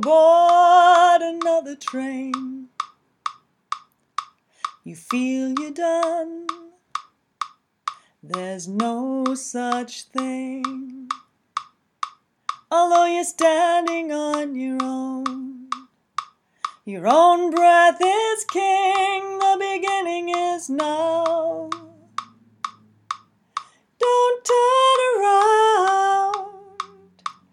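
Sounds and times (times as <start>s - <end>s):
person singing lead vocal: 0.0s - 2.8s, 4.8s - 6.8s, 8.2s - 11.3s, 12.7s - 15.9s, 16.8s - 22.2s, 24.0s - 27.2s
click track: 0.0s - 16.8s, 18.4s - 25.6s, 26.3s - 27.5s.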